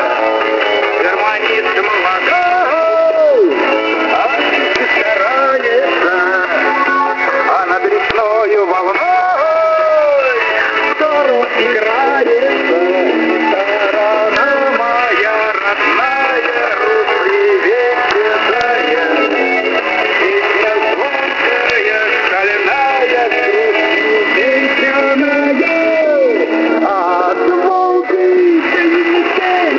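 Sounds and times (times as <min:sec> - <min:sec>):
propaganda song on shortwave radio: 0:00.0 - 0:29.7.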